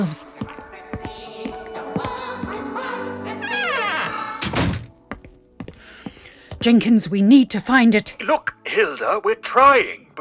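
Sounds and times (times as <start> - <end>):
speech: 0.0 - 0.3, 6.6 - 10.0
door being closed: 0.3 - 6.9.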